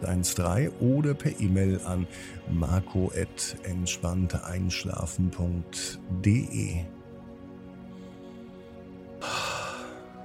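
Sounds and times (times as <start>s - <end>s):
quiet steady tonal background: 0.0s - 10.2s
speech: 0.2s - 7.0s
slow deep breath during a guided relaxation for falling asleep: 7.7s - 10.2s.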